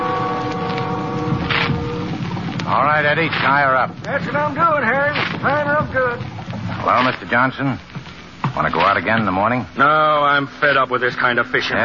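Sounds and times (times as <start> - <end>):
faint tonal lines: 0.0 - 6.9
boat engine droning as it comes into port on the Martinique coast: 0.0 - 11.4
speech: 2.7 - 7.9, 8.5 - 11.8.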